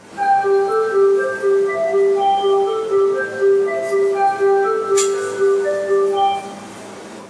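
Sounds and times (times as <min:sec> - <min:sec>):
train jingle in Tokyo: 0:00.0 - 0:07.2.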